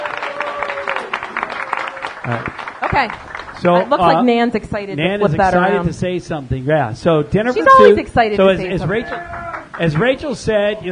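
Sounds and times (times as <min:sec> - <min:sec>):
audience applause: 0:00.0 - 0:04.2, 0:08.9 - 0:10.3
speech: 0:02.3 - 0:10.9.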